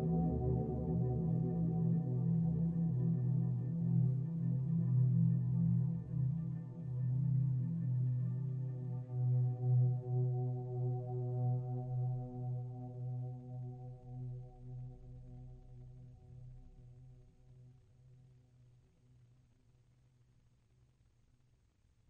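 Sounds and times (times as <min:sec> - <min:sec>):
ambient music: 0:00.0 - 0:17.1.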